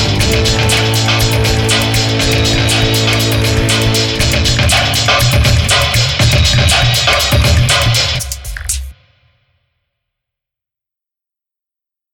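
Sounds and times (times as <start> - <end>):
cyber background music: 0.0 - 8.9.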